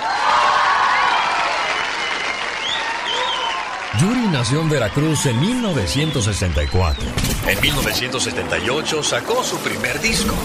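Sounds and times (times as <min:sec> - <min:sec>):
live audience applause: 0:00.0 - 0:06.1
speech: 0:04.0 - 0:10.4.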